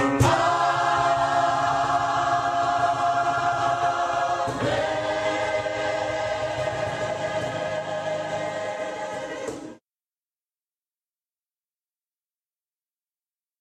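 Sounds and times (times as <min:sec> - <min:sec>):
choir singing: 0:00.2 - 0:09.8.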